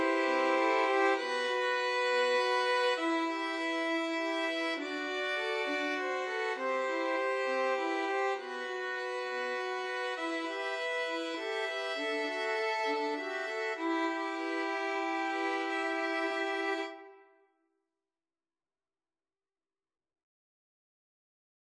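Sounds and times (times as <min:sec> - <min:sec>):
Spanish violin ensemble: 0:00.0 - 0:17.2.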